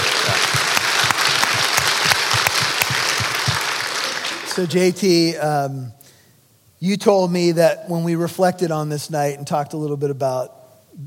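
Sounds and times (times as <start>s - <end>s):
audience applause: 0.0s - 4.8s
speech: 4.6s - 6.0s, 6.8s - 11.0s.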